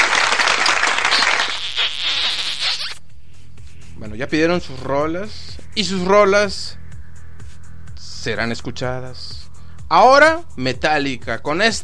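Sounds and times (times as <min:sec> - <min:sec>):
applause: 0:00.0 - 0:01.6
speech: 0:04.2 - 0:06.8, 0:08.2 - 0:11.8.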